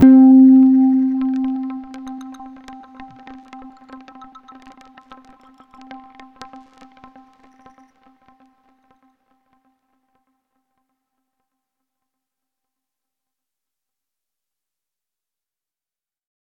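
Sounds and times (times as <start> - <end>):
puzzle stinger tone: 0.0 - 2.8.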